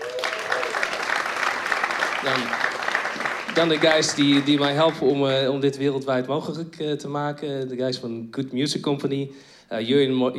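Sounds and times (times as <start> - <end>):
audience applause: 0.0 - 5.2
speech: 2.2 - 10.3.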